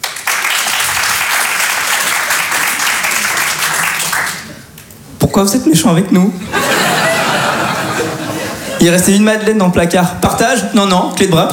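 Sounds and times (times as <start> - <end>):
audience applause: 0.0 - 4.6
speech: 5.4 - 6.7, 8.8 - 11.5
laughter: 6.4 - 8.9.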